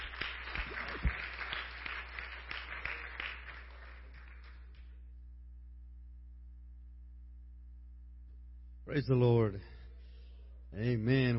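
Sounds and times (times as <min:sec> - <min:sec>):
audience applause: 0:00.0 - 0:04.7
speech: 0:08.9 - 0:09.8, 0:10.7 - 0:11.3.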